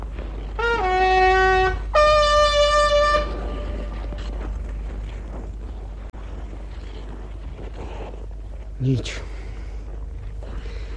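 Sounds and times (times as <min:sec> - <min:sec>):
brassy horn blasts: 0:00.4 - 0:04.5
speech: 0:08.9 - 0:09.3.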